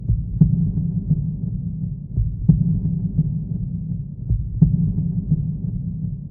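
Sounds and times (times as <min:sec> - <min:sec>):
heartbeat: 0:00.0 - 0:06.2.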